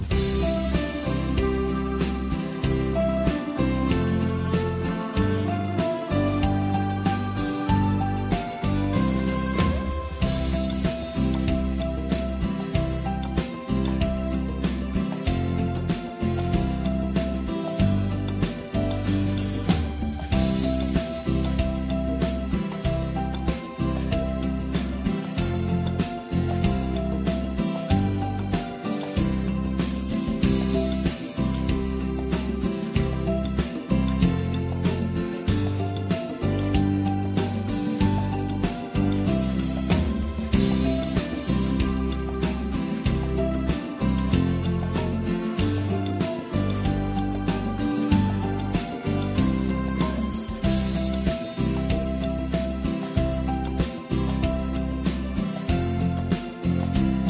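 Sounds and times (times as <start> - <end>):
karaoke backing track: 0.1 - 57.2.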